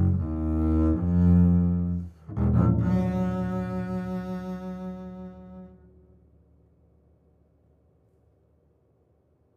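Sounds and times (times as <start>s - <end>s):
contemporary double bass playing: 0.0s - 6.2s.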